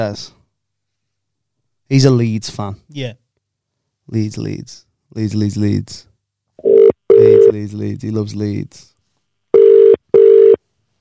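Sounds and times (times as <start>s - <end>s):
speech: 0.0s - 0.4s, 1.9s - 3.2s, 4.1s - 6.8s, 7.5s - 8.9s
phone ringback tone on an outgoing call: 6.6s - 7.5s, 9.5s - 10.6s.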